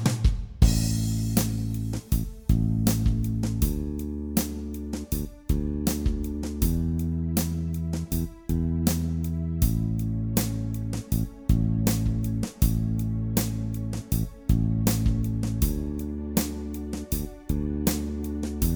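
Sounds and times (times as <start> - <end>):
groove jam track: 0.2 - 18.7.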